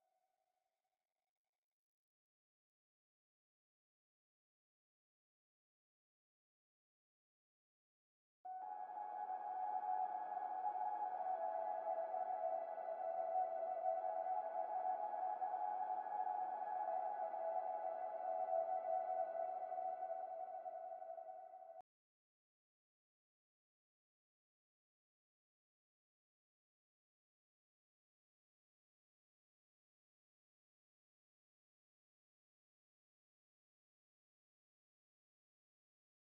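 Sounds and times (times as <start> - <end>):
atmosphere: 8.5 - 21.8.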